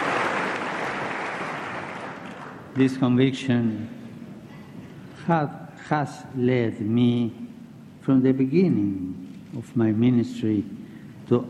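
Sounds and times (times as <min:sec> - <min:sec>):
crowd clapping: 0:00.0 - 0:02.9
speech: 0:02.8 - 0:04.0, 0:05.3 - 0:07.4, 0:08.0 - 0:11.4.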